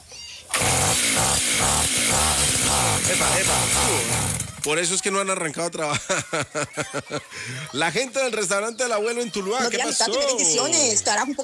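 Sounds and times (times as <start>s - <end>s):
brush cutter engine starting: 0.5s - 4.9s
speech: 3.1s - 11.4s
laughter: 5.8s - 8.1s, 9.4s - 11.2s.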